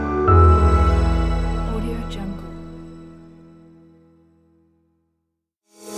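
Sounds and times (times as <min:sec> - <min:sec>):
logo intro jingle: 0:00.2 - 0:03.5.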